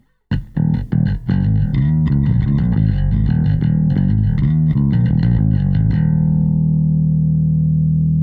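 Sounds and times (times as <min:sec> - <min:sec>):
bass: 0:00.3 - 0:08.2.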